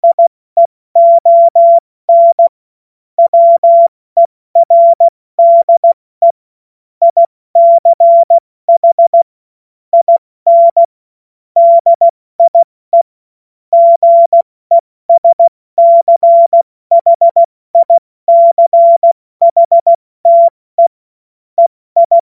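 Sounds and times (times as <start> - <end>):
CW Morse code beeps: 0.0 - 0.3, 1.0 - 2.5, 3.2 - 6.4, 7.0 - 9.3, 10.0 - 10.9, 11.6 - 13.1, 13.8 - 20.9, 21.6 - 22.2.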